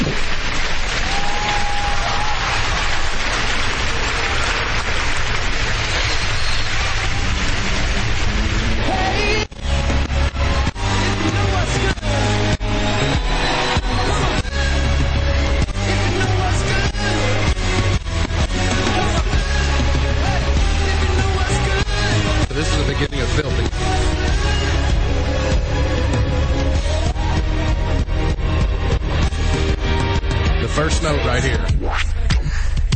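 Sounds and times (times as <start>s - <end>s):
crowd applauding and cheering: 0.0s - 32.3s
band playing steady beat and bass: 7.6s - 32.9s.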